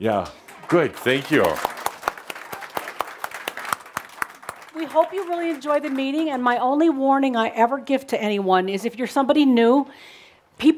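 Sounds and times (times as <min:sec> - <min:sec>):
speech: 0:00.0 - 0:01.8, 0:04.9 - 0:10.7
small group clapping to welcome first-time attendees at a meeting: 0:00.1 - 0:07.1.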